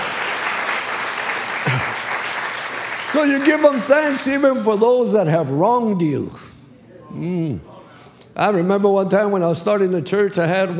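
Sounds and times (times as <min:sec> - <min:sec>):
audience applauding: 0:00.0 - 0:05.2
speech: 0:03.1 - 0:06.5, 0:07.1 - 0:07.7, 0:08.4 - 0:10.7.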